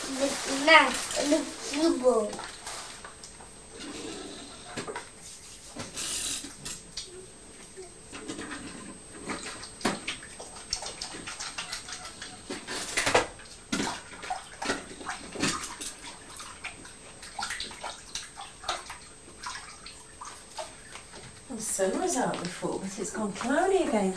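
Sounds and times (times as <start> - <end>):
water splashing and gurgling from hands being washed: 0.0 - 3.2, 8.2 - 24.1
tap water running while hands are washed: 0.0 - 24.1
speech: 0.1 - 2.5, 23.2 - 24.1.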